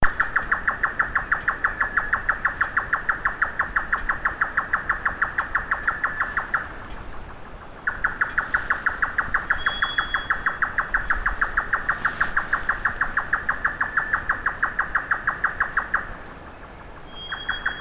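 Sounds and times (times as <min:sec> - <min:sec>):
grey nightjar Caprimulgus jotaka giving dry knocking calls: 0:00.0 - 0:17.7.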